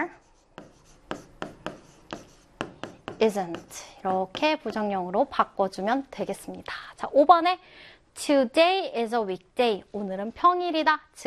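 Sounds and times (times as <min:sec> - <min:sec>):
pen or marker writing strokes on a board or paper during a lesson: 0:00.0 - 0:04.8
speech: 0:03.2 - 0:11.2.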